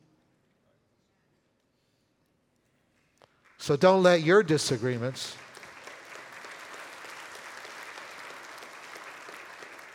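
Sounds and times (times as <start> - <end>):
speech: 3.6 - 5.4
audience applause: 5.4 - 9.9.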